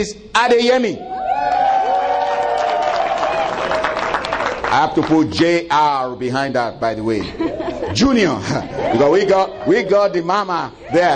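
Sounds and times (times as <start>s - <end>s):
speech: 0.0s - 1.6s, 4.7s - 11.1s
audience applause and cheering: 1.0s - 5.2s
laughter: 7.1s - 10.6s.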